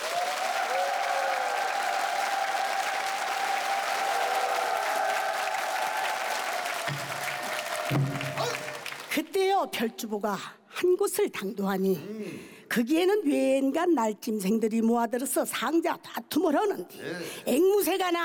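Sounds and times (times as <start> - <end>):
audience applause: 0.0 - 9.3
speech: 9.2 - 18.2.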